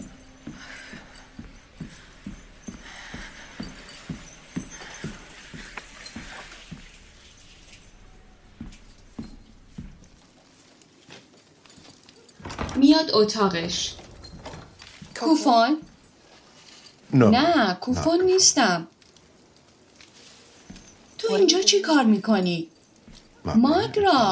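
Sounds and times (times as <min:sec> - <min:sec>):
footsteps climbing stairs: 0:00.0 - 0:10.5, 0:11.8 - 0:16.5, 0:20.5 - 0:21.8, 0:22.8 - 0:24.3
speech: 0:12.9 - 0:14.0, 0:15.2 - 0:15.9, 0:17.2 - 0:18.9, 0:21.3 - 0:22.7, 0:23.4 - 0:24.3.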